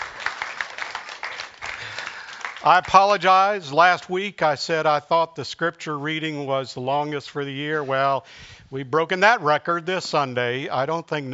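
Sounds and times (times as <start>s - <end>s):
audience applause: 0.0s - 3.2s
speech: 2.6s - 11.3s.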